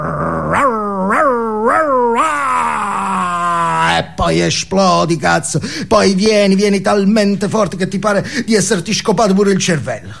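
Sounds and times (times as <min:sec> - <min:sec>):
person growling like a dog: 0:00.0 - 0:04.0
speech: 0:04.3 - 0:10.1.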